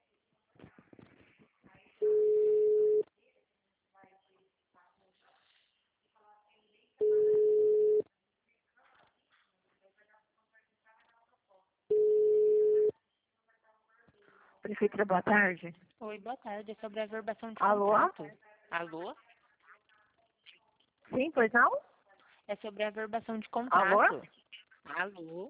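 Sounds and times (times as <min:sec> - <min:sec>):
telephone signal tones after an automated answering message on a municipal office line: 0:02.0 - 0:03.0, 0:07.0 - 0:08.0, 0:11.9 - 0:12.9
speech: 0:14.8 - 0:19.3, 0:21.1 - 0:21.9, 0:22.5 - 0:25.4.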